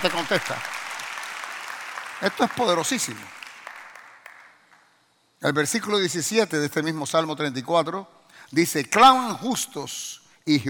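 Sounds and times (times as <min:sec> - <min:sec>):
speech: 0:00.0 - 0:00.8, 0:02.2 - 0:03.4, 0:05.4 - 0:10.6
audience applause: 0:00.0 - 0:04.6.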